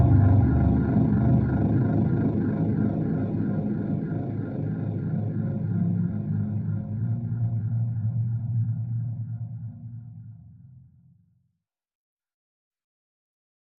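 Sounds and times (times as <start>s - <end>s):
low drone of a locust nest: 0.0s - 10.3s.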